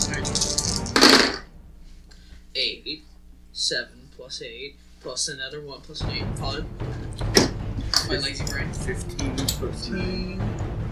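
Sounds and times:
dice rattling and rolling: 0.2 - 1.4
speech: 3.7 - 7.2, 8.1 - 10.9.

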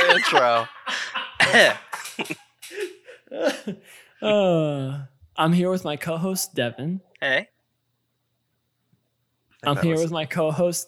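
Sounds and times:
laughter: 0.0 - 4.0
speech: 0.2 - 7.5, 9.6 - 10.8
cough: 1.2 - 2.0.

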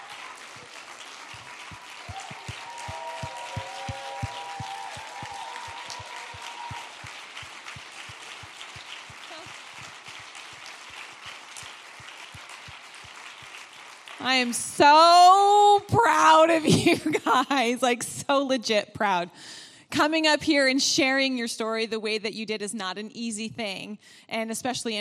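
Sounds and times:
audience applause: 0.0 - 15.0
speech: 14.2 - 25.0.

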